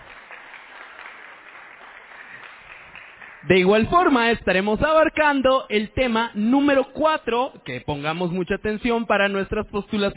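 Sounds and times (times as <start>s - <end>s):
audience applause: 0.0s - 3.7s
speech: 3.4s - 10.1s.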